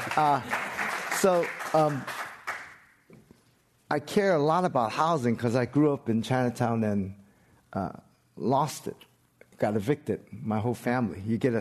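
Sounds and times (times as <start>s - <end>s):
audience applause at a panel on equity and justice in city development: 0.0s - 2.8s
speech: 0.2s - 0.6s, 1.2s - 2.2s, 3.9s - 11.6s.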